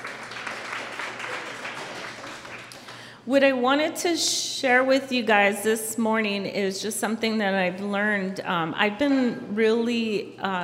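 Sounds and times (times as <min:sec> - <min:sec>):
audience clapping: 0:00.0 - 0:03.1
speech: 0:03.3 - 0:10.6.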